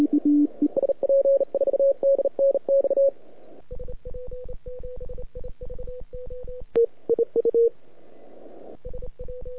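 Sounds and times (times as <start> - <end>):
CW Morse code signal on 3,5MHz: 0.0 - 3.1, 3.7 - 7.7.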